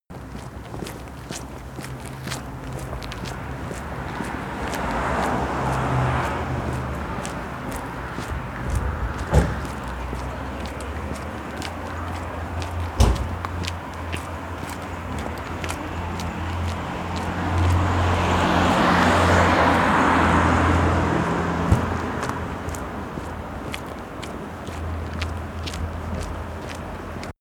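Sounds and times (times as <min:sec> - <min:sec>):
person walking down the street: 0:00.2 - 0:27.3.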